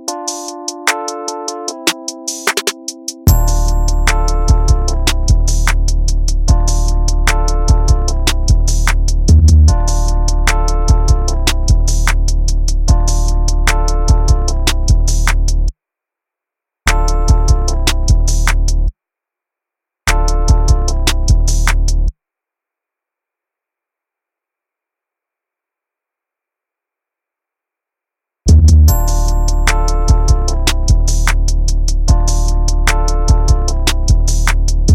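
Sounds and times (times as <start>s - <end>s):
instrumental music: 0.0s - 15.7s, 16.9s - 18.9s, 20.1s - 22.1s, 28.9s - 34.9s.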